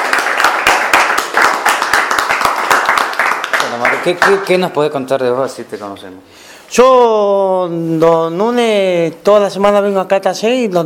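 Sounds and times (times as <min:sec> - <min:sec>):
small group clapping to welcome two new members: 0:00.0 - 0:04.8
speech: 0:04.0 - 0:10.8.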